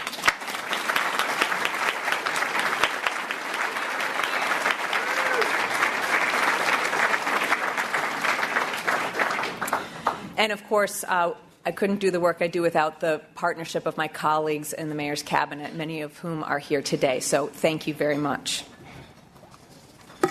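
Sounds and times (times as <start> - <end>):
audience applause for the CDOT team at a civic gathering: 0.0 - 10.2
speech: 10.4 - 18.7.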